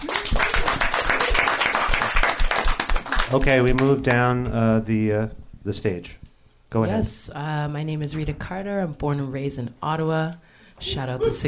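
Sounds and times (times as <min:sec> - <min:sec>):
audience applause: 0:00.0 - 0:04.0
speech: 0:03.3 - 0:11.4.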